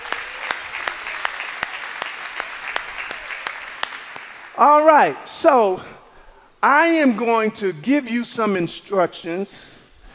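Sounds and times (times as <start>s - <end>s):
crowd clapping: 0.0s - 5.0s
speech: 4.6s - 6.0s, 6.6s - 9.8s.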